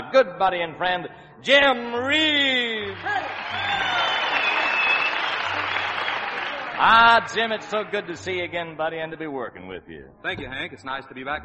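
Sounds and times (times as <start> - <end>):
speech: 0.1 - 4.0, 6.8 - 11.4
audience applause at the Grand Ole Opry: 2.2 - 8.4.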